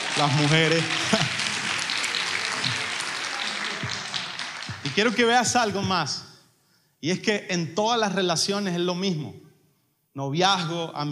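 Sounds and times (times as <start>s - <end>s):
laughter: 0.0s - 5.2s
audience applause: 0.0s - 5.7s
speech: 0.2s - 1.3s, 5.0s - 6.2s, 7.0s - 9.4s, 10.2s - 11.1s.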